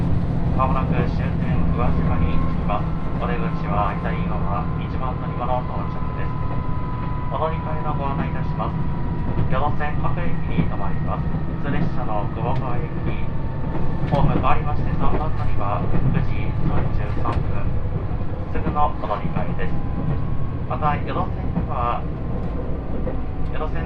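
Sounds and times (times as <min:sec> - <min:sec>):
Yosan Line limited express Uwakai train rumble: 0:00.0 - 0:23.8
rail clicks: 0:00.0 - 0:23.8.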